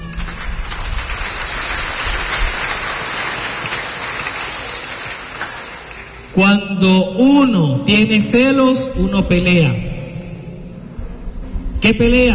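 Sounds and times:
crowd clapping: 0:00.0 - 0:06.4
speech: 0:06.4 - 0:10.0, 0:11.8 - 0:12.3.

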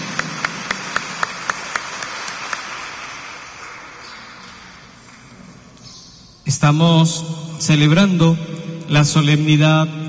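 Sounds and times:
audience clapping loudly: 0:00.0 - 0:05.2
speech: 0:06.5 - 0:10.0.

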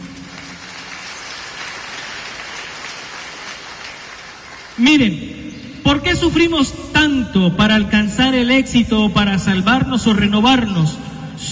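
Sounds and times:
audience clapping: 0:00.0 - 0:04.8
speech: 0:04.8 - 0:05.3, 0:05.9 - 0:11.5.

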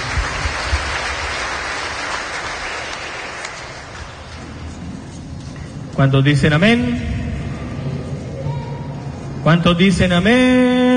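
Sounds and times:
audience applauding: 0:00.0 - 0:04.3
speech: 0:06.0 - 0:07.2, 0:09.4 - 0:10.8.

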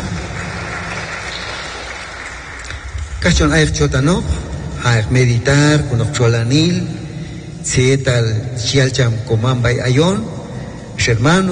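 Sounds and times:
church congregation clapping hands: 0:00.0 - 0:03.5
speech: 0:03.2 - 0:07.0, 0:07.6 - 0:10.4, 0:11.0 - 0:11.5.

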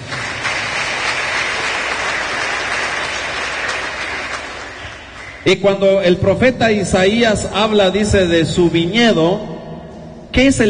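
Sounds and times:
audience clapping hands: 0:00.0 - 0:05.5
speech: 0:05.4 - 0:09.5, 0:10.4 - 0:10.6.

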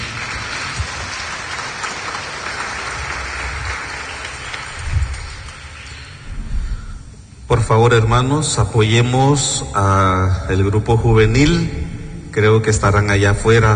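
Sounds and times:
church congregation clapping along: 0:00.0 - 0:07.0
speech: 0:07.6 - 0:11.8, 0:12.4 - 0:13.7.

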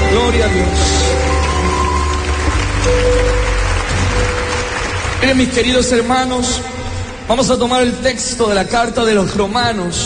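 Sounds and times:
audience applauding loudly: 0:00.0 - 0:07.2
speech: 0:00.3 - 0:01.0, 0:05.2 - 0:10.0.

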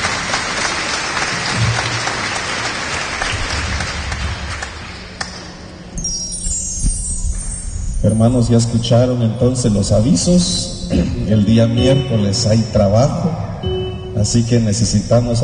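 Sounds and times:
audience applause: 0:00.0 - 0:05.6
speech: 0:08.1 - 0:13.4, 0:14.2 - 0:15.4.

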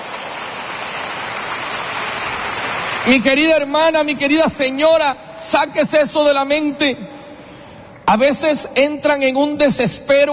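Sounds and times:
audience applause: 0:00.0 - 0:03.6
speech: 0:03.0 - 0:07.2, 0:08.1 - 0:10.3.

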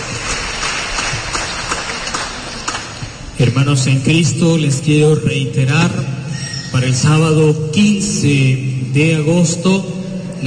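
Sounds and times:
applause: 0:00.0 - 0:03.2
speech: 0:03.4 - 0:10.4.

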